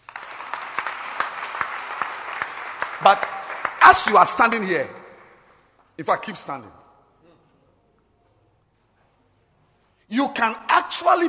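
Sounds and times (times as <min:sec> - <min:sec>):
audience clapping for a woman: 0:00.0 - 0:06.0
speech: 0:03.0 - 0:03.3, 0:03.9 - 0:05.0, 0:06.0 - 0:06.8, 0:10.1 - 0:11.2.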